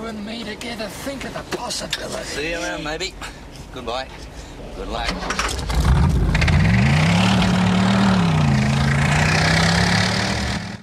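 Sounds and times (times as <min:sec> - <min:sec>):
speech: 0:00.1 - 0:06.1
Falcon car engine droning as it drives off into the night: 0:05.0 - 0:10.8.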